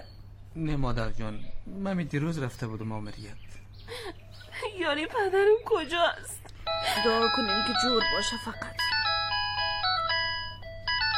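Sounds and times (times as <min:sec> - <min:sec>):
speech: 0:00.6 - 0:04.2, 0:04.8 - 0:08.8
telephone electronic melodic ringtone: 0:06.6 - 0:11.1.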